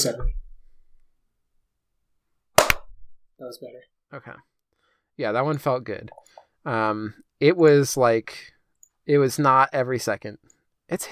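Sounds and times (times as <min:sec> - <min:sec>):
speech: 0:00.0 - 0:00.4, 0:03.4 - 0:04.5, 0:05.2 - 0:08.5, 0:09.1 - 0:11.1
single sharp hand clap: 0:02.6 - 0:02.8.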